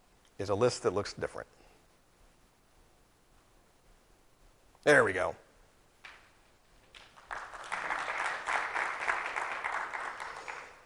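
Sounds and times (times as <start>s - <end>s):
speech: 0.4s - 1.6s, 4.8s - 5.4s
audience clapping: 6.8s - 10.8s.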